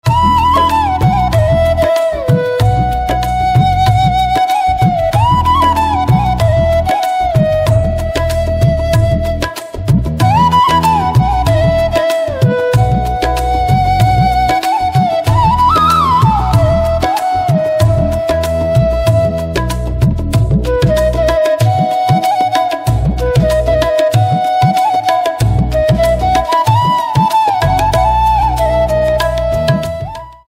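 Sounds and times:
flute: 0.0s - 30.4s.

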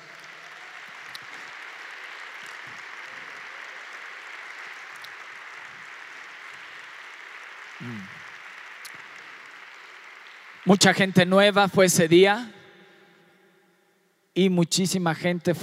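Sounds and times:
audience applause: 0.0s - 11.6s
speech: 7.8s - 8.2s, 10.7s - 12.6s, 14.4s - 15.6s.

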